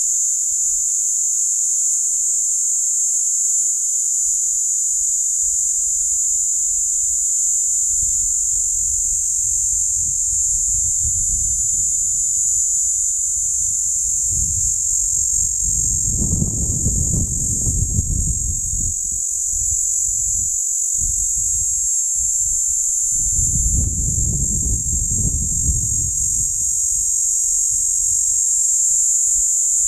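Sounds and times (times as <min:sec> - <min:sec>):
cicada buzzing: 0:00.0 - 0:29.8
low wind rumble: 0:14.0 - 0:19.7, 0:23.2 - 0:27.2.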